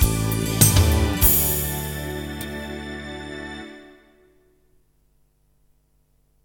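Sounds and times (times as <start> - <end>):
melody: 0.2 - 4.3.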